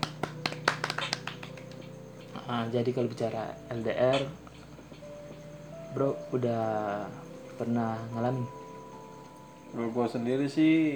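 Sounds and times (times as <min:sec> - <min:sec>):
hand clapping: 0:00.0 - 0:04.3
speech: 0:02.5 - 0:04.4, 0:06.0 - 0:08.6, 0:09.7 - 0:10.9.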